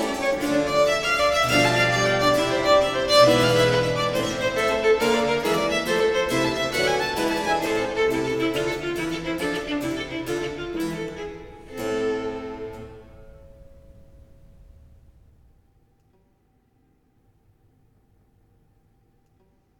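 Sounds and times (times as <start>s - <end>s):
sonata gigue allegro in B minor: 0.0s - 12.8s.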